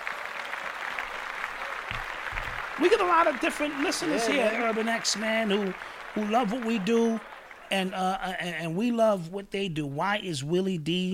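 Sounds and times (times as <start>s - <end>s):
clapping: 0.0s - 8.0s
speech: 2.8s - 11.1s.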